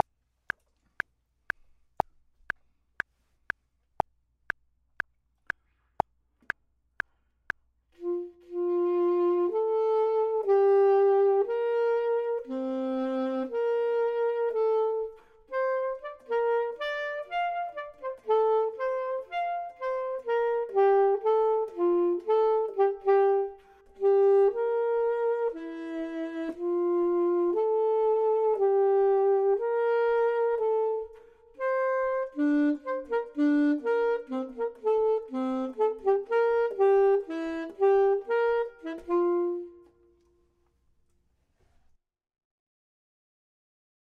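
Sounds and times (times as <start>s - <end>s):
clarinet: 8.0s - 40.7s
saxophone: 8.0s - 40.7s.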